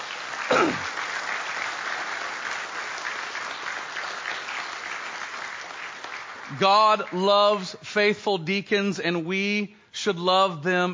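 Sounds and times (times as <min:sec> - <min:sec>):
crowd clapping: 0:00.0 - 0:07.8
speech: 0:06.5 - 0:10.9.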